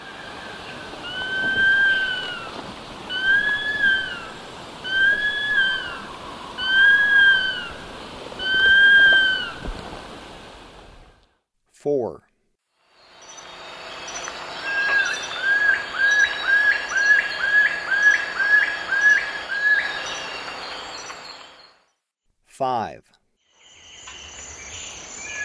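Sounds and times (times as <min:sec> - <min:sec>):
Long-billed Woodcreeper whistled call: 0:00.1 - 0:02.5, 0:03.1 - 0:07.8, 0:08.4 - 0:09.6, 0:14.6 - 0:20.3.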